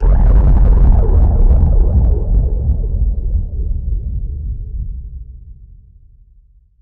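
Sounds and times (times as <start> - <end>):
noise production effect: 0.0 - 5.4.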